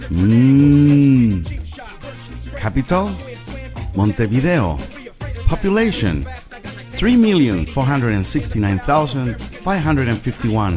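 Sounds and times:
cow mooing: 0:00.0 - 0:01.5
speech: 0:00.1 - 0:00.5, 0:02.6 - 0:03.3, 0:04.0 - 0:04.9, 0:05.5 - 0:06.4, 0:07.0 - 0:10.7.

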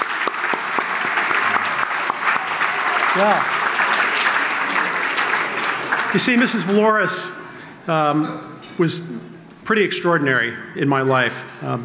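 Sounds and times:
audience applause for a teacher being honored: 0:00.0 - 0:07.1
speech: 0:03.2 - 0:03.6, 0:06.1 - 0:11.8.

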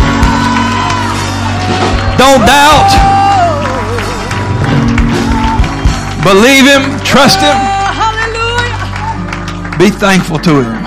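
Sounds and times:
whoops and cheering voices: 0:00.0 - 0:04.5, 0:05.1 - 0:06.2, 0:07.1 - 0:09.2
crowd clapping and shouting: 0:00.0 - 0:10.8
steady musical backdrop: 0:00.0 - 0:10.8
speech: 0:02.2 - 0:03.2, 0:06.2 - 0:07.8, 0:09.8 - 0:10.8.

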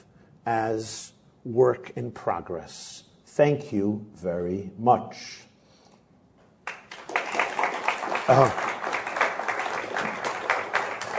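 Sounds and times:
speech: 0:00.5 - 0:05.5, 0:08.3 - 0:08.7
audience applause: 0:06.7 - 0:11.1.

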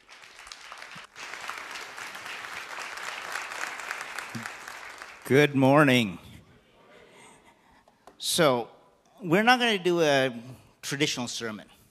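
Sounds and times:
audience applause: 0:00.0 - 0:05.3
speech: 0:05.2 - 0:06.2, 0:08.4 - 0:11.7.

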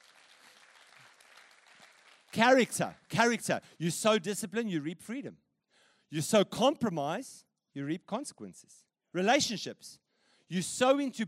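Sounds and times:
faint pastors and leaders conference audience applause: 0:00.0 - 0:03.2
speech: 0:02.3 - 0:05.4, 0:06.1 - 0:11.2.

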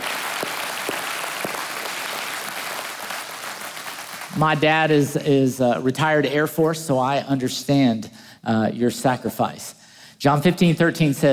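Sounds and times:
audience clapping: 0:00.0 - 0:04.6
speech: 0:04.4 - 0:11.3.

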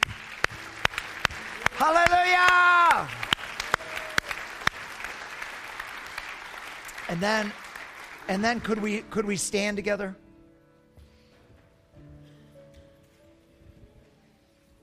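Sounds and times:
audience clapping: 0:00.0 - 0:09.4
speech: 0:01.8 - 0:02.1, 0:07.1 - 0:07.6, 0:08.3 - 0:10.2.

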